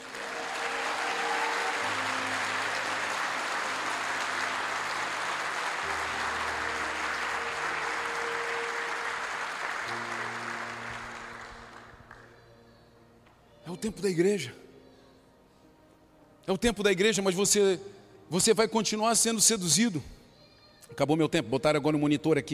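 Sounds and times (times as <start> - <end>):
audience applause: 0.0 - 12.3
speech: 13.8 - 14.6, 16.5 - 20.2, 20.9 - 22.5.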